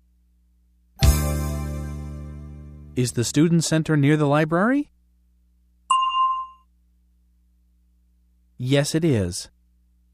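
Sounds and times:
faint steady low hum: 0.0s - 1.0s, 3.0s - 10.1s
speech: 3.0s - 5.0s, 8.6s - 9.6s
bell ding: 5.9s - 6.6s.

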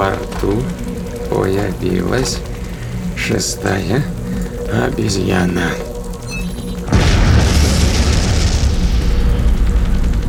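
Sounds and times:
crackling debris: 0.0s - 10.2s
speech: 1.4s - 2.5s, 3.2s - 5.9s
explosion blast: 6.9s - 10.2s.

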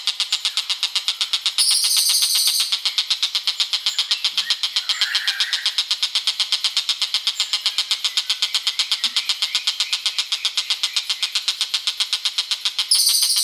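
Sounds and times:
bird chirps: 0.2s - 13.4s.

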